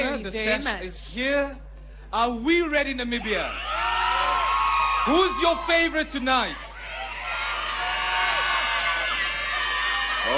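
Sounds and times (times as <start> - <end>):
speech: 0.2 - 3.7, 5.0 - 6.6
audience cheering and applause: 3.6 - 10.3.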